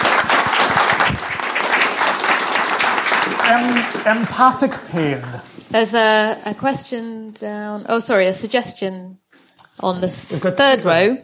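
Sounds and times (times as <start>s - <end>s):
round of applause: 0.0s - 4.9s
speech: 3.5s - 9.2s, 9.8s - 11.2s.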